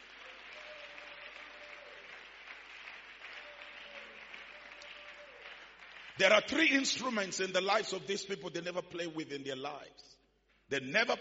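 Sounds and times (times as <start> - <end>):
audience clapping: 0.0 - 7.8
speech: 6.2 - 11.1.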